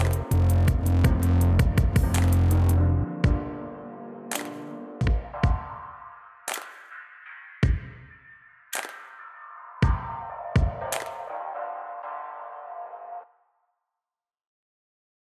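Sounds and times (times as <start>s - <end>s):
dark piano waltz: 0.0s - 5.7s.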